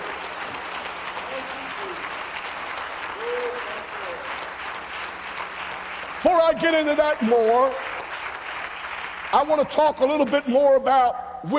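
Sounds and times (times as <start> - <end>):
audience clapping: 0.0 - 11.1
speech: 6.2 - 7.8, 9.4 - 11.5.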